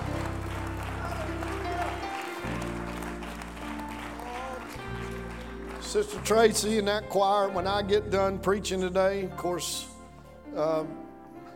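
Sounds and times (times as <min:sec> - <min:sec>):
audience clapping hands in praise: 0:00.0 - 0:07.4
speech: 0:05.9 - 0:09.9, 0:10.6 - 0:11.0.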